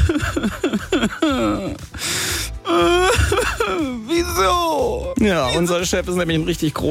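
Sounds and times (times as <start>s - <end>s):
man sobbing and wailing: 0.0s - 2.0s, 2.6s - 5.2s
speech: 5.2s - 6.8s.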